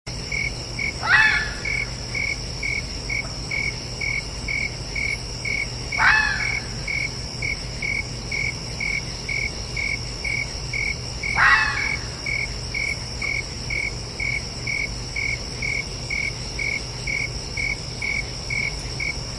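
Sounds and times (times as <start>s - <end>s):
crickets chirping: 0.1s - 19.3s
red fox screaming: 1.0s - 1.9s, 6.0s - 6.8s, 11.3s - 12.2s.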